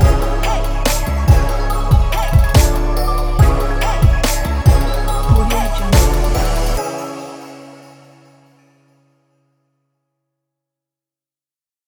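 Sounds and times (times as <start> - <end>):
commercial trap music: 0.0 - 8.6.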